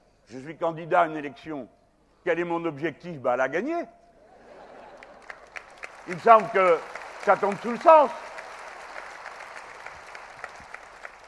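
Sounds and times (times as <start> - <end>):
speech: 0.3 - 4.0, 6.1 - 8.2
audience applause: 5.0 - 11.2.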